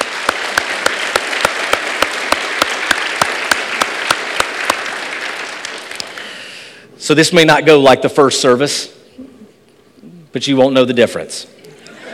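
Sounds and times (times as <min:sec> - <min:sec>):
church congregation at First Baptist Church Matthews applauding to welcome a guest: 0:00.0 - 0:06.7
speech: 0:07.1 - 0:09.0, 0:10.3 - 0:11.6.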